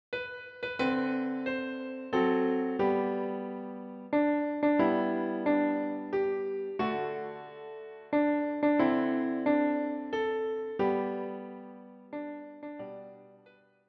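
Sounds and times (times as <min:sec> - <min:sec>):
piano: 0:00.1 - 0:13.8.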